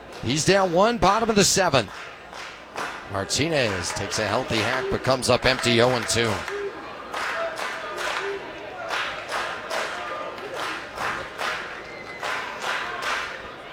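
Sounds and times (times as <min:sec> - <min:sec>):
laughter: 0:00.0 - 0:02.0, 0:03.0 - 0:11.0
baseball stadium crowd clapping rhythmically: 0:00.0 - 0:13.7
speech: 0:00.2 - 0:02.1, 0:03.1 - 0:06.6.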